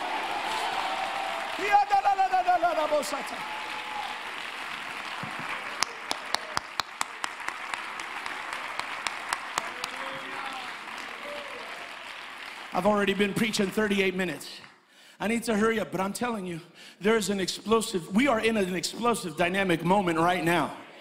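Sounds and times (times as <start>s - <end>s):
cheering voices: 0.0s - 7.0s, 7.9s - 13.4s
audience hand clapping: 0.0s - 14.8s
speech: 2.6s - 3.7s, 12.8s - 14.6s, 15.2s - 20.8s.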